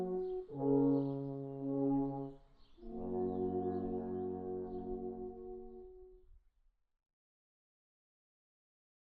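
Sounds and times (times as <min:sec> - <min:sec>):
alphorn: 0:00.0 - 0:06.2.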